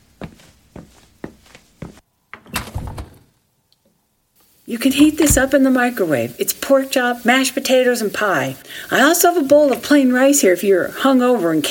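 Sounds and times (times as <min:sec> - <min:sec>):
footsteps: 0:00.0 - 0:02.0, 0:05.0 - 0:05.6
fridge door opening and closing: 0:02.4 - 0:03.4, 0:05.0 - 0:05.6
speech: 0:04.7 - 0:11.6.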